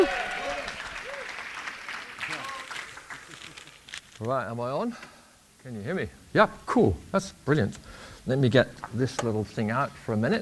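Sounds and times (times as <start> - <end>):
voices shouting and cheering: 0.0 - 1.3
audience applauding: 0.0 - 3.9
speech: 4.2 - 10.3.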